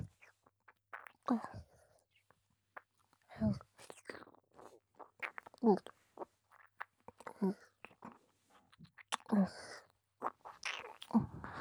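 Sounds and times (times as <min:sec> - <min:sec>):
ear licking: 0:00.1 - 0:01.3, 0:02.8 - 0:09.3, 0:10.2 - 0:11.5.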